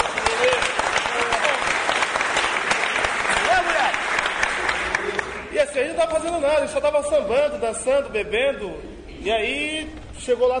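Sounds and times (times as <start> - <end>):
audience applause: 0.0 - 5.5
speech: 6.0 - 10.5.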